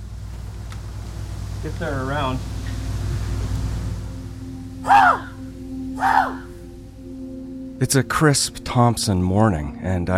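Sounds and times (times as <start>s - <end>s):
low outdoor hum: 0.0s - 10.1s
speech: 1.6s - 2.6s, 7.8s - 10.1s
person imitating a raven's call: 4.8s - 5.4s, 6.0s - 6.6s.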